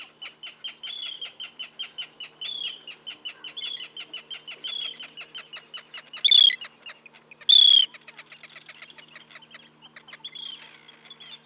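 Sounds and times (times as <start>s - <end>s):
Sterna paradisaea Arctic tern kik calls: 6.2s - 6.6s, 7.5s - 7.9s.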